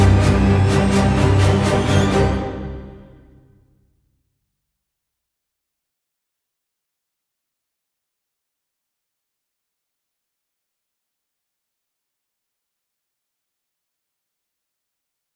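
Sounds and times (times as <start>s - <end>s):
orchestra: 0.0s - 3.5s.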